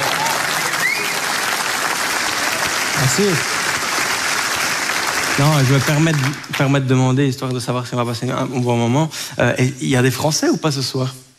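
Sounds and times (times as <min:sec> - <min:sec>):
audience applause at a stand-up comedy show in Belgium: 0:00.0 - 0:06.9
whistles: 0:00.6 - 0:01.4
speech: 0:03.1 - 0:03.6, 0:05.4 - 0:11.2.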